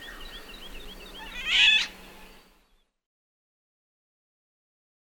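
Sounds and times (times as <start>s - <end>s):
oriole call: 1.2s - 2.3s.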